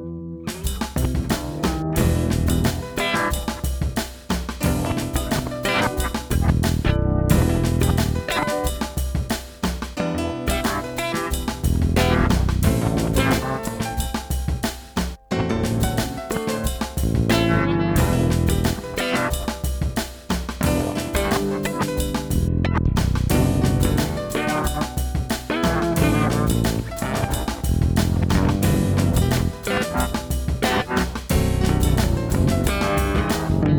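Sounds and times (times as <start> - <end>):
instrumental music: 0.3 - 33.7.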